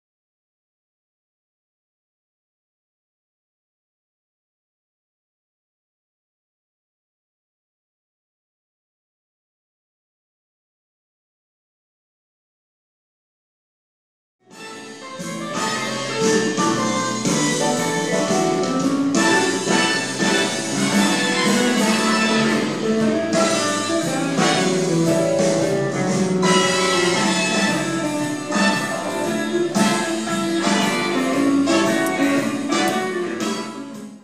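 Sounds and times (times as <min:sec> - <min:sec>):
slow foxtrot music: 0:14.5 - 0:34.2.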